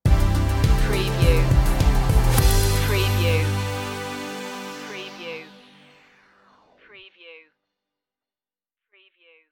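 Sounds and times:
deep dreamy stinger: 0.5s - 6.8s.

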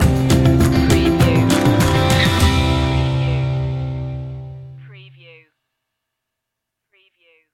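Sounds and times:
short music stinger: 0.0s - 4.7s.

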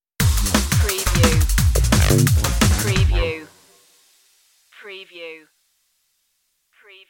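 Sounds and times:
danger drum and bass stinger: 0.2s - 3.4s.

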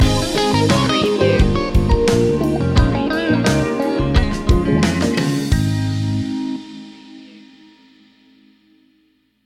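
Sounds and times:
funky love stinger: 0.0s - 6.6s.

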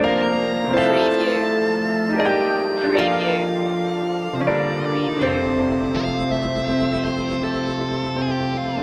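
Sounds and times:
fantasy waltz loop: 0.0s - 8.8s.

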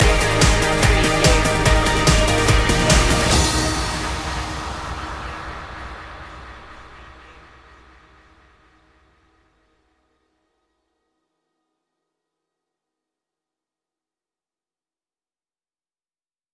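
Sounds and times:
fresh energy music stinger: 0.0s - 8.2s.

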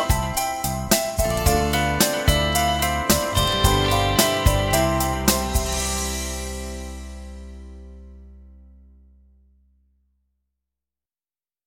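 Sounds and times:
instrumental music: 0.0s - 8.6s.

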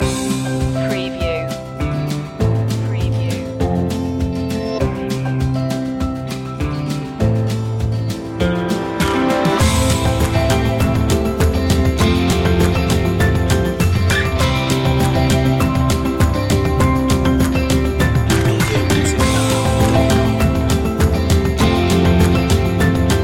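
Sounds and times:
instrumental music without vocals: 0.0s - 23.2s.

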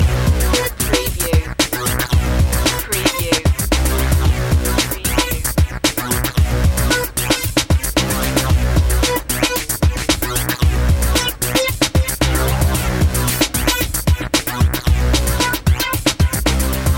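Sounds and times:
urban battlefront music loop: 0.0s - 16.9s.

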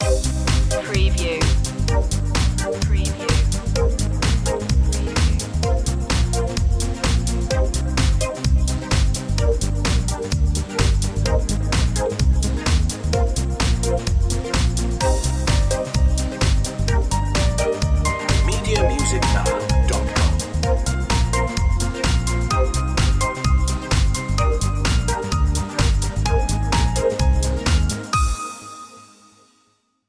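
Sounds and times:
beat: 0.0s - 28.3s.

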